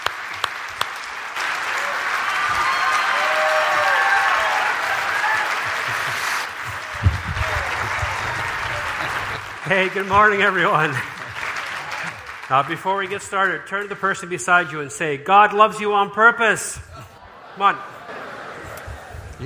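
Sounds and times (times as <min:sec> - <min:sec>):
audience applause welcoming a guest speaker: 0:00.0 - 0:14.4
crowd noise: 0:00.0 - 0:16.2, 0:16.8 - 0:19.4
laughter: 0:04.4 - 0:12.4, 0:16.7 - 0:19.4
speech: 0:09.7 - 0:11.1, 0:12.5 - 0:16.9, 0:17.6 - 0:17.9.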